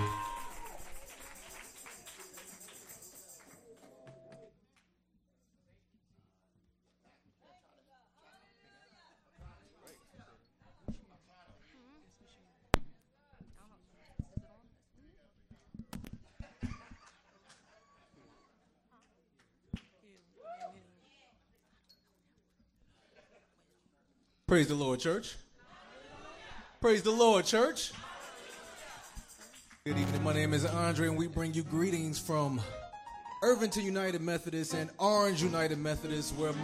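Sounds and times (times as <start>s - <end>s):
audience hand clapping in praise: 0.0s - 4.5s, 27.9s - 32.6s
speech: 24.5s - 25.4s, 26.8s - 28.0s, 29.8s - 32.8s, 33.4s - 36.6s.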